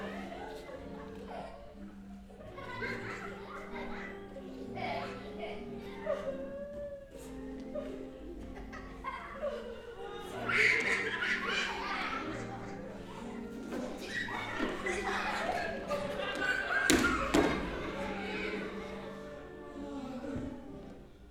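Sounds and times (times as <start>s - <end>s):
children at a clown performance: 0.0s - 21.2s
crowd laughing at a clown performance: 0.0s - 21.2s
music at a clown performance: 0.0s - 21.2s
women at a clown performance: 0.0s - 21.2s.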